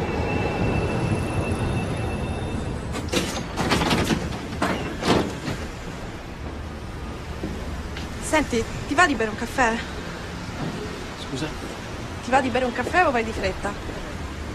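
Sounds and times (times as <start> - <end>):
old Milan tram rumbling along: 0.0 - 14.5
speech: 8.4 - 10.0, 11.3 - 11.7, 12.3 - 14.0.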